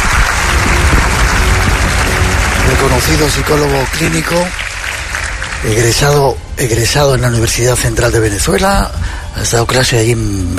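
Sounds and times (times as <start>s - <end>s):
audience applause welcoming a guest to the stage: 0.0s - 6.2s
speech: 2.8s - 4.6s, 5.6s - 10.5s.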